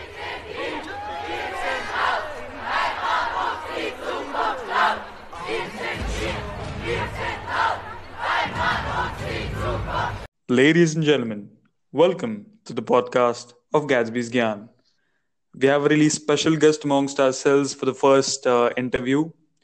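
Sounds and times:
rights protest crowd shouting and chanting at Flinders Street and Swanston Street, Melbourne: 0.0s - 10.3s
speech: 10.5s - 14.7s, 15.6s - 19.4s.

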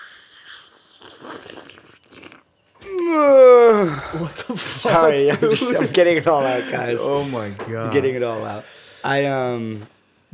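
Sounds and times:
slurping tea: 0.0s - 2.6s
laughter: 2.9s - 8.6s
speech: 4.1s - 9.9s.

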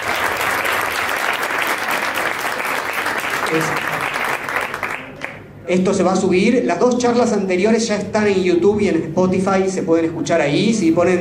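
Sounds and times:
audience applause: 0.0s - 5.4s
speech: 3.5s - 3.9s, 5.7s - 11.2s.

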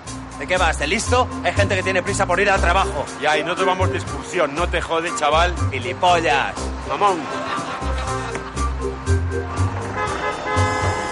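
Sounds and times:
bus engine pulling away: 0.0s - 11.1s
traffic noise: 0.0s - 11.1s
speech: 0.4s - 7.6s
laughter: 7.0s - 8.7s
car horn blasts: 9.8s - 11.1s.

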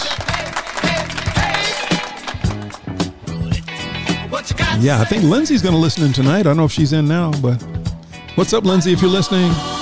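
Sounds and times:
round of applause: 0.0s - 3.1s
speech: 4.4s - 7.8s, 8.4s - 9.7s.

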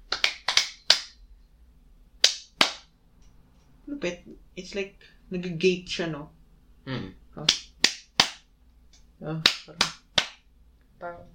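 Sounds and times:
hand clap for audio sync: 0.0s - 1.2s, 2.2s - 2.9s, 7.4s - 8.5s, 9.4s - 10.5s
speech: 3.9s - 7.6s, 9.2s - 10.0s, 11.0s - 11.3s.

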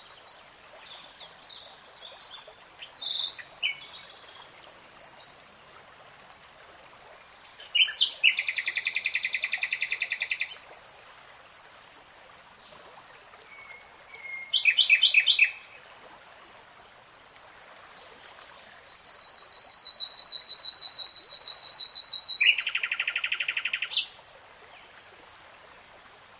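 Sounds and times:
nightingale singing: 7.7s - 10.6s, 13.5s - 15.7s, 18.8s - 24.1s.

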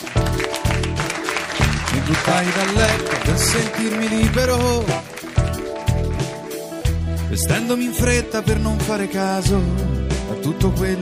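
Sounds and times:
applause: 0.0s - 6.9s
speech: 2.1s - 5.3s, 7.4s - 11.0s.

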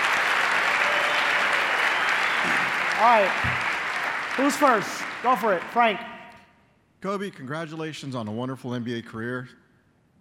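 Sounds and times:
audience round of applause: 0.0s - 6.1s
speech: 3.0s - 3.6s, 4.4s - 6.1s, 7.0s - 9.6s.

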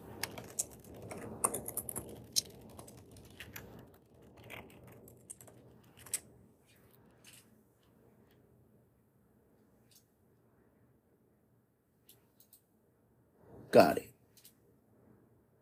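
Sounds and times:
typing on a computer keyboard: 0.0s - 6.3s
speech: 13.7s - 14.0s.

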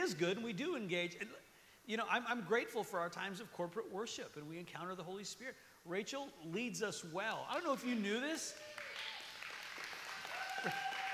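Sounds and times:
speech: 0.0s - 9.1s, 10.6s - 10.8s
audience applause: 8.5s - 11.1s.

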